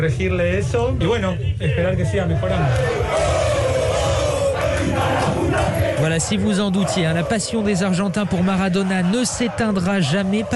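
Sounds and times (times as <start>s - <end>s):
speech: 0.0s - 3.4s, 4.8s - 10.5s
crowd ovation for Maradona's doctor leaving the operating theatre: 2.2s - 10.5s.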